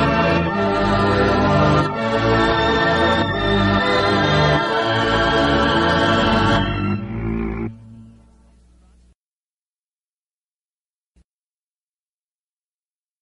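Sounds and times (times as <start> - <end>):
instrumental music: 0.0 - 9.1.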